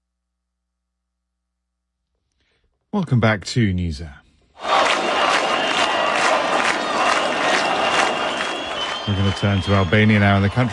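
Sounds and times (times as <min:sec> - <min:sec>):
speech: 0:02.9 - 0:04.2, 0:09.1 - 0:10.7
protest crowd at nightly demonstration against resort development on Albania's Mediterranean coast: 0:04.6 - 0:09.1.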